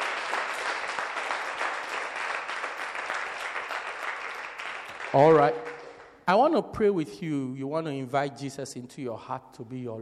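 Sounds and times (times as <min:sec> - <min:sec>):
audience clapping: 0:00.0 - 0:06.2
speech: 0:05.1 - 0:05.6, 0:06.3 - 0:10.0.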